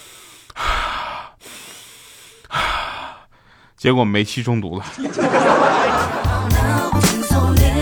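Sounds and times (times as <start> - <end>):
person taking deep breaths: 0.0 - 3.8
speech: 3.8 - 7.7
laughter: 4.9 - 6.8.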